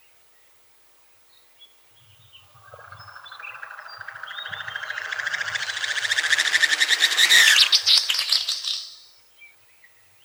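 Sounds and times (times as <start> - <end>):
great snipe display rattling: 3.7 - 8.8.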